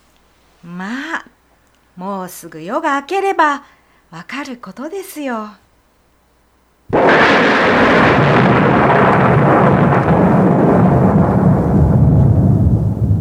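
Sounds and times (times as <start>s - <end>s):
speech: 0.6s - 1.3s, 2.0s - 5.6s
loud thunderclap shaking a hut: 6.9s - 13.1s.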